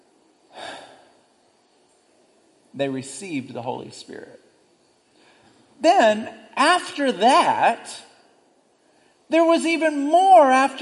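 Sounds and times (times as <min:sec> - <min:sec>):
man's voice exhaling a breath imitating Jesus breathing on his disciples: 0:00.5 - 0:01.1
speech: 0:02.8 - 0:04.5, 0:05.8 - 0:08.1, 0:09.3 - 0:10.8.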